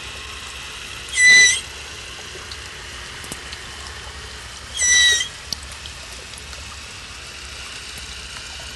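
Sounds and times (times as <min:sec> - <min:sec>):
West Indian manatee squeaking: 0:01.1 - 0:01.8, 0:04.7 - 0:05.5.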